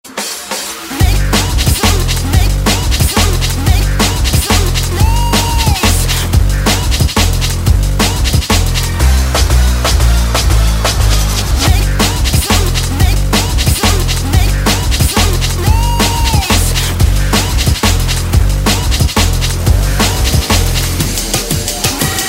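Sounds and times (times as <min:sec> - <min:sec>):
winning music: 0:00.1 - 0:22.2.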